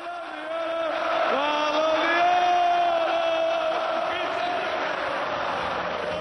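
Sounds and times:
football crowd in a stadium chanting for a player: 0.0s - 6.1s.

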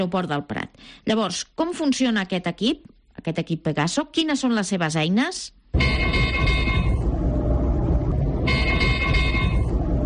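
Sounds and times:
speech: 0.0s - 6.2s
drone-detection radar alarm: 5.8s - 10.0s
low rumble: 5.8s - 10.0s.

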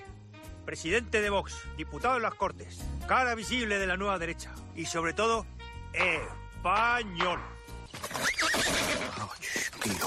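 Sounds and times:
speech: 0.7s - 7.6s
horse neighing: 7.9s - 10.0s.

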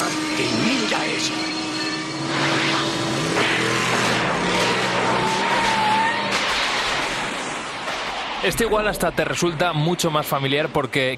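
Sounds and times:
car engine revving and accelerating: 0.0s - 7.8s
tires skidding with high squealing screech: 0.0s - 8.6s
speech: 8.4s - 11.1s.

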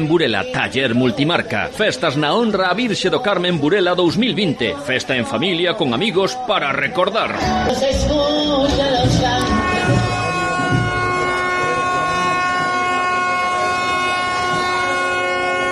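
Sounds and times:
speech: 0.0s - 9.1s
faint murmur of voices and bustle: 0.0s - 15.7s
ship sirens blaring during maritime procession: 9.1s - 15.7s.

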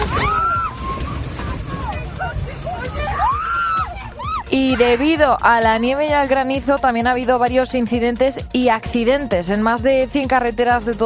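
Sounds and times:
strong wind gusts blowing in Córdoba: 0.0s - 4.8s
speech: 4.6s - 11.0s.

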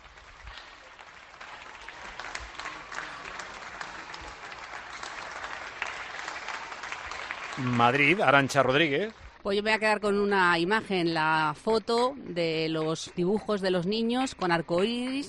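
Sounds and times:
applause for health workers from many people: 0.0s - 9.4s
speech: 7.6s - 15.2s.

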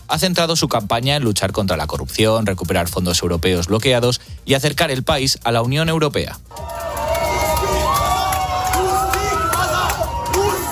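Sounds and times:
speech: 0.1s - 6.7s
crowd shouting in the streets: 6.5s - 10.6s.

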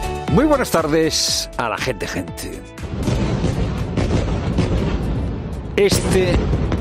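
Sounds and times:
speech: 0.4s - 3.1s, 5.8s - 6.7s
bombs falling and exploding on Gaza: 2.8s - 6.7s.

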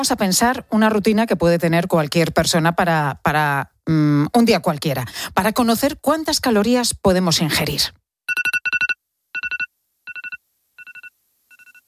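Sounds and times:
speech: 0.0s - 8.0s
alarm clock beeping: 8.3s - 11.8s.

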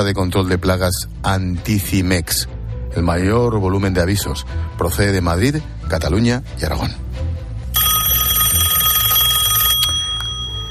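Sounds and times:
speech: 0.0s - 7.0s
telephone ringing with trilling bell: 7.8s - 10.7s.

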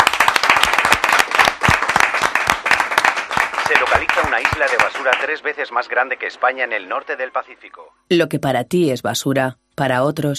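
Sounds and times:
audience applause: 0.0s - 5.6s
speech: 4.4s - 10.3s.

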